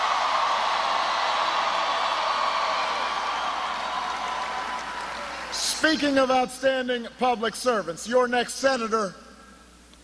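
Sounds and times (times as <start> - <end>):
crowd applause: 0.0 - 5.8
speech: 5.8 - 9.2.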